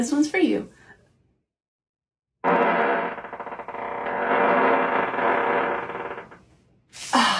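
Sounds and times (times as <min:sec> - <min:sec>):
muffled fart in leather pants: 0:02.4 - 0:06.4.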